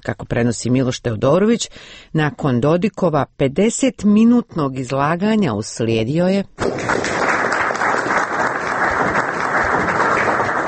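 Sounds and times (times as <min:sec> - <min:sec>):
speech: 0:00.0 - 0:07.2
debate participants applauding after Dodik's speech: 0:06.6 - 0:10.6.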